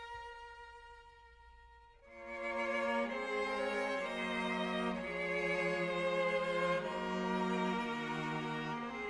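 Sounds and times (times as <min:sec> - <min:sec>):
soprano singing: 0:02.1 - 0:09.0.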